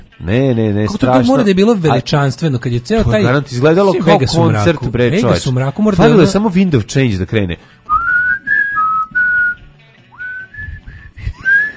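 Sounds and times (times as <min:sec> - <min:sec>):
speech: 0:00.2 - 0:07.8
whistled melody of an anthem: 0:07.9 - 0:11.7.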